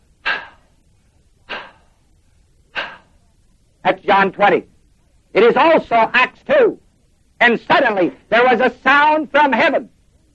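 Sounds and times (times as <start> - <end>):
person imitating heavy breathing with forceful exhales: 0.2 - 0.8, 1.5 - 2.0, 2.7 - 3.2
speech: 3.8 - 4.7, 5.3 - 6.8, 7.4 - 9.9.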